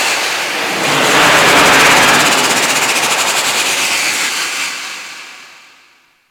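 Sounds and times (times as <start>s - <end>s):
rocket projectile: 0.1s - 5.2s.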